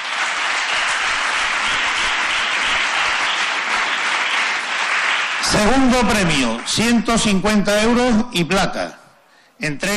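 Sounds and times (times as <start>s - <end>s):
applause: 0.0s - 8.0s
speech: 5.6s - 9.0s, 9.6s - 9.9s.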